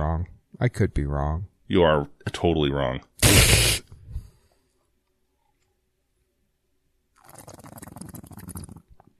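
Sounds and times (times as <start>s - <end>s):
speech: 0.6s - 3.6s
person breathing close to the microphone: 3.4s - 4.9s.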